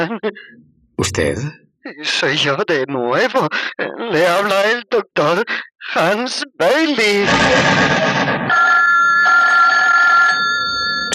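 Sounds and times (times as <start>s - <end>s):
speech: 0.0s - 8.6s
radiotelephone ringing: 8.5s - 11.1s.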